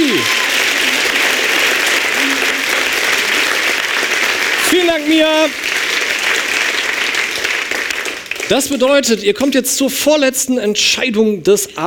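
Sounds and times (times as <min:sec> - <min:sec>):
audience applause: 0:00.0 - 0:09.0
speech: 0:05.0 - 0:05.7, 0:08.5 - 0:11.8.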